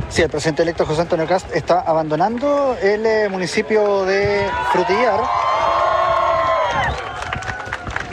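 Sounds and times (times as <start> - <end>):
speech: 0.2 - 5.5
supporters applauding: 2.1 - 8.1.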